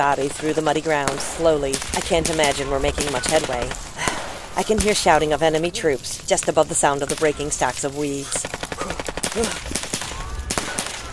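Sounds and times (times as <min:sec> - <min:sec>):
speech: 0:00.0 - 0:09.8
gunshot: 0:03.2 - 0:04.5, 0:08.5 - 0:11.1.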